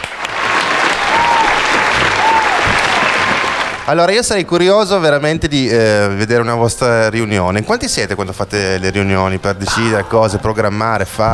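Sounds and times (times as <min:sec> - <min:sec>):
live applause: 0:00.0 - 0:03.9
speech: 0:03.9 - 0:11.3.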